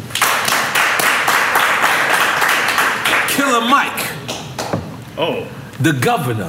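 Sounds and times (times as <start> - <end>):
hands clapping: 0.0 - 4.9
speech: 3.5 - 4.1, 5.2 - 6.4.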